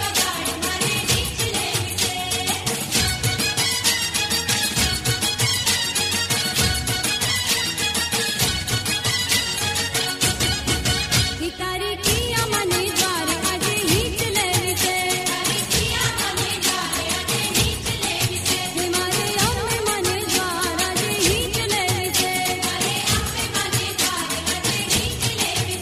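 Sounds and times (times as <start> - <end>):
dhol drumming for Gujarati Garba: 0.0 - 11.4, 12.1 - 25.8.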